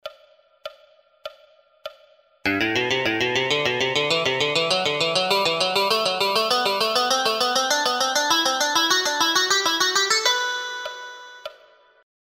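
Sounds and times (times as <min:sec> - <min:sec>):
musical scales in groups of four: 0:02.5 - 0:11.5.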